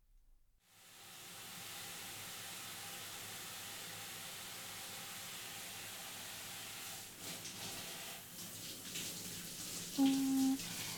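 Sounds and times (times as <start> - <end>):
warm shower water rinsed over someone during a hair wash: 1.0 - 10.9
faint tone: 10.0 - 10.6.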